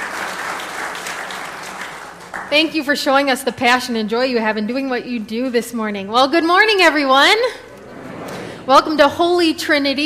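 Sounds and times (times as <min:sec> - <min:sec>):
audience applause: 0:00.0 - 0:02.5
speech: 0:02.4 - 0:07.6, 0:08.7 - 0:10.0.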